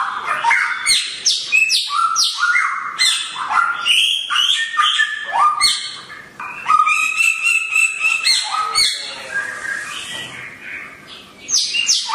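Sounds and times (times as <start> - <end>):
songbird singing vigorously: 0.0 - 12.1.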